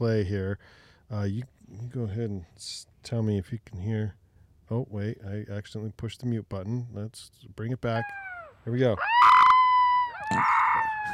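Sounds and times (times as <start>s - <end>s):
speech: 0.0s - 9.3s, 10.3s - 10.5s
wolf puppy howling: 8.0s - 11.1s.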